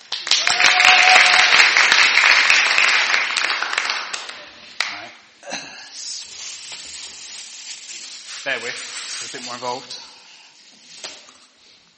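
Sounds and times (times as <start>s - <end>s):
audience applause: 0.0s - 5.0s
speech: 9.3s - 10.0s.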